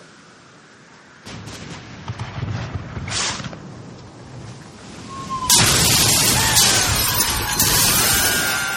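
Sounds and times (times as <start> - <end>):
cannon fire barrage: 1.3 - 3.7, 5.5 - 8.7.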